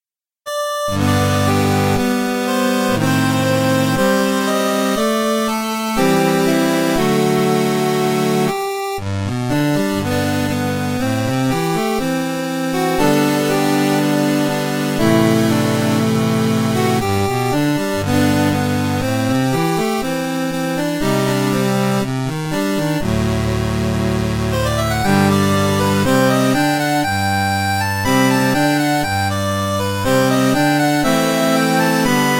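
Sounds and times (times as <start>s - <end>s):
8-bit remix music: 0.5s - 32.3s.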